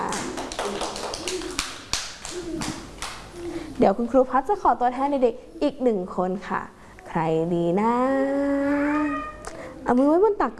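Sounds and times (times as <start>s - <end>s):
children clapping hands: 0.0s - 3.3s
speech: 3.8s - 10.5s.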